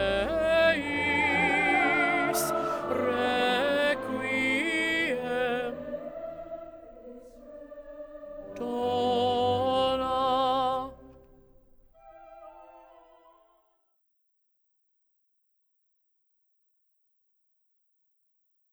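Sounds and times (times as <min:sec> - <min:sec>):
choral requiem movement: 0:00.0 - 0:13.6.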